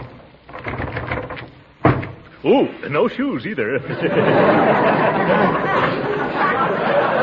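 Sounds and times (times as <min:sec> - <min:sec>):
stuck door being tugged and rattled: 0:00.0 - 0:02.4
speech: 0:02.4 - 0:06.7
laughter: 0:03.5 - 0:07.2.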